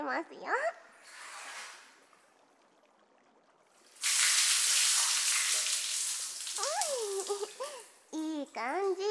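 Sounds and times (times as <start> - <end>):
speech: 0.1 - 1.2, 8.1 - 9.0
hot water pouring: 0.9 - 2.4, 3.6 - 8.2.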